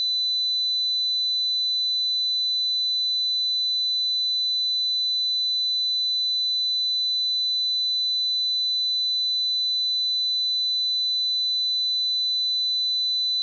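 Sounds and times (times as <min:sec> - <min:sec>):
2 kHz sine tone: 0:00.0 - 0:13.4.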